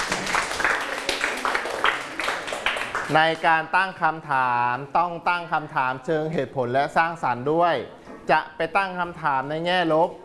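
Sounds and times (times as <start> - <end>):
classroom clapping for a classmate: 0.0 - 3.5
speech: 3.1 - 10.2.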